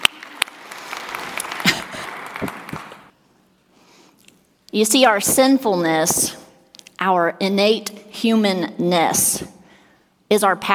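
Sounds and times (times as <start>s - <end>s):
crowd applause: 0.0s - 3.1s
speech: 4.7s - 6.4s, 7.0s - 9.6s, 10.3s - 10.7s.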